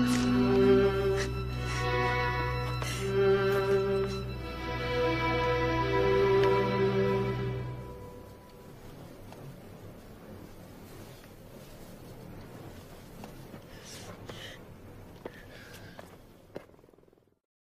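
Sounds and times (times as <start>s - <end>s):
Kurdish lullaby singing: 0.0s - 8.6s.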